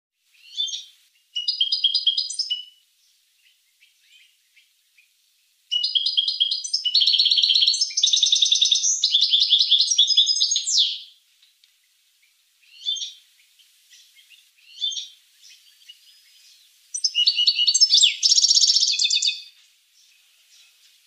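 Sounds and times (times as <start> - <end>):
finch singing: 0.4 - 2.8, 5.7 - 11.2, 12.2 - 20.9.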